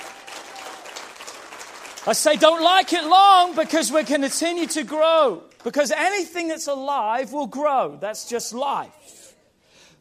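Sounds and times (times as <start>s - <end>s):
audience applause: 0.0s - 4.9s
speech: 2.0s - 9.2s.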